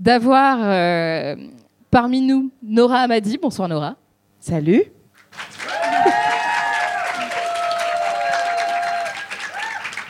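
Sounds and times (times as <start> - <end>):
speech: 0.0 - 5.6
audience applauding: 5.2 - 10.0
voices cheering: 5.6 - 10.0.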